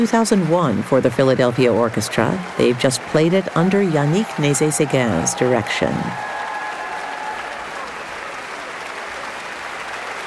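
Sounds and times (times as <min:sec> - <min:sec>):
speech: 0:00.0 - 0:06.3
large concert audience applause: 0:00.0 - 0:10.2
cheers and whistles: 0:02.1 - 0:10.2.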